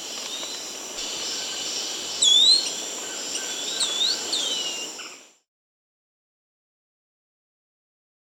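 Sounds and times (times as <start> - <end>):
Pink-throated Becard song of clear slurred whistled notes: 0.3 - 5.2.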